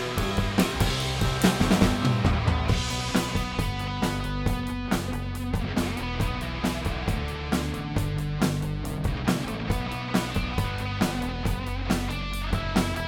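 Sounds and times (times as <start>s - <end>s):
drums: 0.0s - 13.0s.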